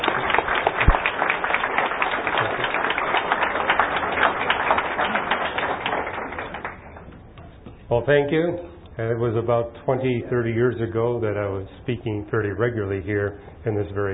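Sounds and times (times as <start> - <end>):
audience applause welcoming a speaker to a classroom talk: 0.0 - 7.1
speech: 7.9 - 14.1.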